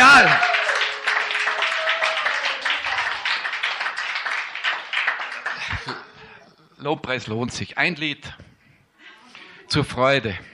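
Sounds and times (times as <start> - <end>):
audience applause: 0.0 - 6.0
speech: 6.8 - 8.5, 9.7 - 10.5.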